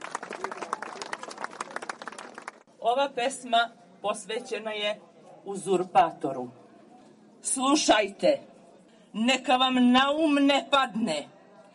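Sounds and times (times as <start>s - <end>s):
audience applause at a gathering: 0.0s - 2.7s
speech: 2.8s - 6.6s, 7.4s - 8.5s, 9.1s - 11.4s.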